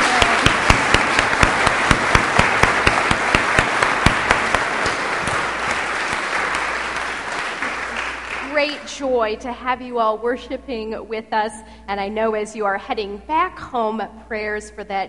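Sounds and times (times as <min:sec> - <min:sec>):
applause in a church service welcoming visiting apple pickers from Jamaica: 0:00.0 - 0:08.9
speech: 0:09.0 - 0:15.0.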